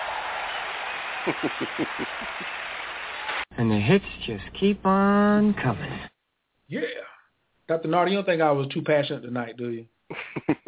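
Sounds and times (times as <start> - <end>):
round of applause: 0.0 - 3.5
laughter: 1.1 - 2.7, 10.1 - 10.6
speech: 1.2 - 2.7, 3.6 - 6.1, 6.7 - 7.1, 7.7 - 10.6.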